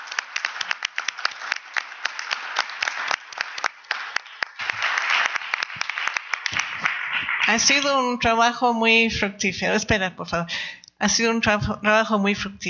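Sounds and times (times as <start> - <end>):
group applause: 0.0 - 7.9
speech: 7.5 - 12.6.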